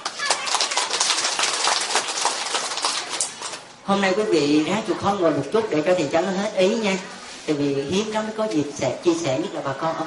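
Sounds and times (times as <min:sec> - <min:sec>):
crowd clapping: 0:00.0 - 0:03.7
speech: 0:03.9 - 0:10.0.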